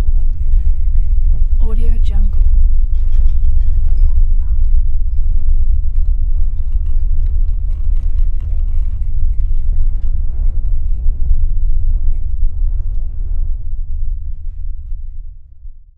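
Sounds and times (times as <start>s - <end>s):
interior earthquake rumble: 0.0s - 15.9s.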